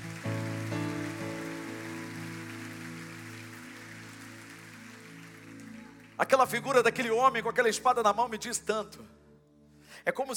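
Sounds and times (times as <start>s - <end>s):
audience applauding: 0.0s - 7.4s
speech: 6.2s - 9.2s, 10.0s - 10.3s.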